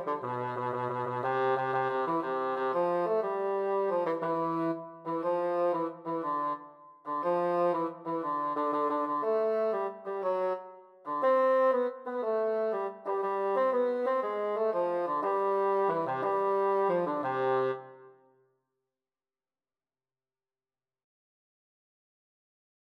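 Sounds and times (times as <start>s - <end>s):
bassoon duet: 0.0s - 18.1s.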